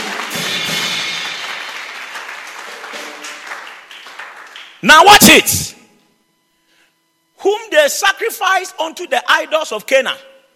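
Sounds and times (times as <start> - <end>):
audience clapping: 0.0 - 5.2
speech: 4.8 - 5.8, 7.4 - 10.3.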